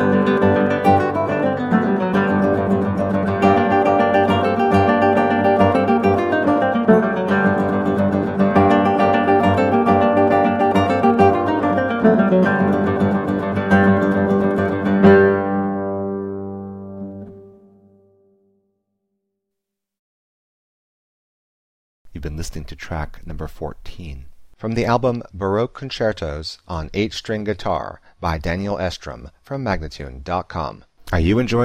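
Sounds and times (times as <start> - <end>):
8 String Guitar playing a concerto presto: 0.0 - 18.3
person speaking: 22.1 - 31.6.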